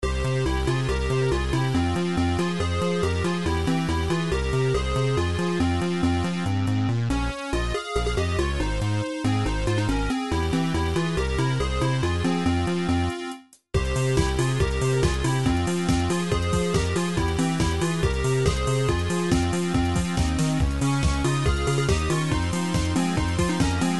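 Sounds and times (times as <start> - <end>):
techno remix: 0.2 - 23.9.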